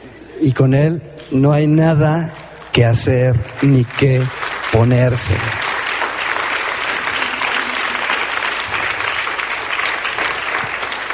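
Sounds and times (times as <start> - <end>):
speech: 0.4 - 5.6
applause: 2.6 - 11.1.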